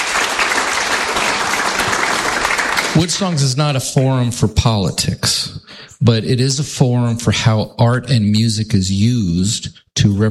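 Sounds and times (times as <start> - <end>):
audience applause welcoming a drummer: 0.0 - 3.4
speech: 3.0 - 10.3.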